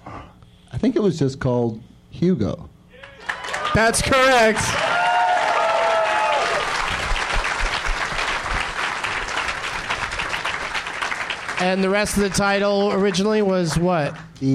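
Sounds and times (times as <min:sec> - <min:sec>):
speech: 0:00.8 - 0:02.7, 0:03.7 - 0:04.9, 0:11.6 - 0:14.5
high whistles or tonal cheers: 0:02.9 - 0:06.8
audience applause: 0:03.0 - 0:14.2.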